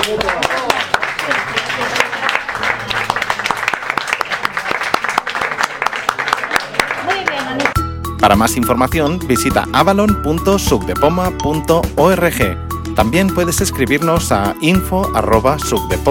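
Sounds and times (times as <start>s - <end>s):
speech: 0.0s - 0.5s, 8.2s - 16.0s
audience applause: 0.0s - 7.8s.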